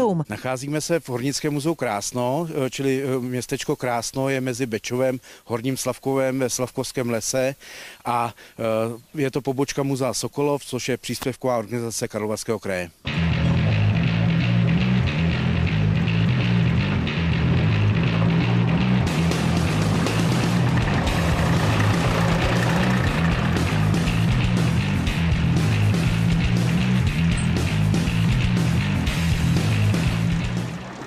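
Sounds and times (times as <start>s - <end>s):
speech: 0.1s - 13.4s
loud continuous engine drone: 13.1s - 31.0s
small mining train rumbling along rails: 16.4s - 31.0s
constant rattling clattering: 17.8s - 28.2s, 29.1s - 31.0s.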